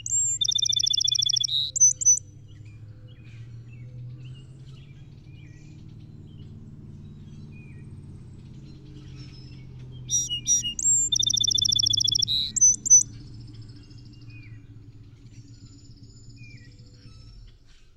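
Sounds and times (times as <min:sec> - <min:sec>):
steady low hum: 0:00.0 - 0:17.6
song sparrow singing: 0:00.0 - 0:17.9.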